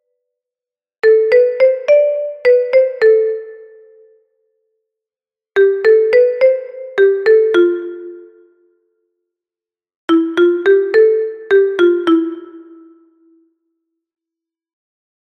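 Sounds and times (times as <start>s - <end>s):
kalimba: 1.0s - 3.8s, 5.6s - 8.4s, 10.1s - 13.0s.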